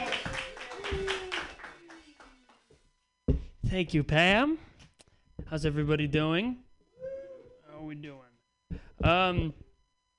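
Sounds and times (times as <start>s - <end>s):
audience clapping for a performer at an open mic: 0.0s - 2.7s
speech: 3.7s - 4.6s, 5.5s - 6.6s, 8.0s - 9.6s.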